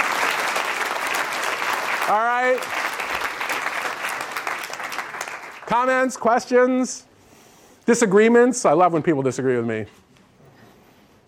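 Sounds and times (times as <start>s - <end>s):
audience applause: 0.0s - 6.2s
speech: 2.1s - 2.8s, 5.7s - 7.1s, 7.9s - 10.0s.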